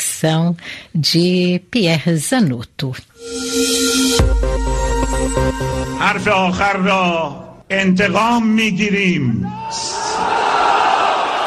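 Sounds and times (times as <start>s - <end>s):
speech: 0.2s - 10.4s
crowd at a funeral procession: 9.5s - 11.4s.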